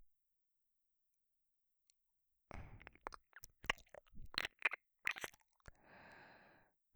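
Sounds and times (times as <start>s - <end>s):
ear licking: 2.8s - 5.7s.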